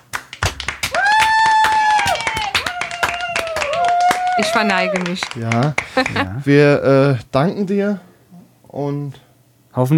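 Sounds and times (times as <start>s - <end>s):
people clapping: 0.0s - 6.3s
long high whoop or whistle: 0.9s - 5.2s
speech: 4.4s - 8.1s, 8.7s - 9.2s, 9.8s - 9.9s.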